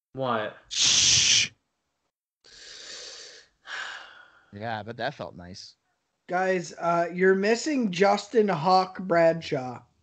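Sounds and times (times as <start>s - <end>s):
speech: 0.2s - 1.0s, 4.5s - 9.9s
person shushing: 0.7s - 1.6s.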